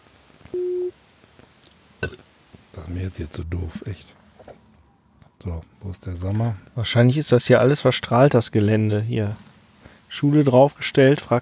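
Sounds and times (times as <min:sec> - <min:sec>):
mobile phone call tone: 0:00.5 - 0:01.0
speech: 0:02.9 - 0:04.2, 0:05.4 - 0:09.5, 0:10.1 - 0:11.4.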